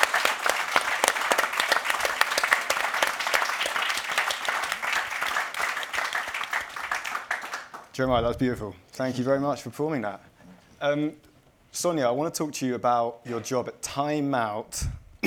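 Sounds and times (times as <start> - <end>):
audience applause: 0.0 - 8.0
speech: 8.0 - 14.9.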